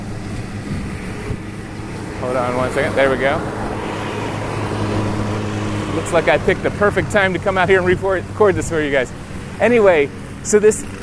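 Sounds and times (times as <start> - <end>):
truck passing by: 0.0 - 11.0
speech: 2.2 - 3.7, 6.0 - 11.0.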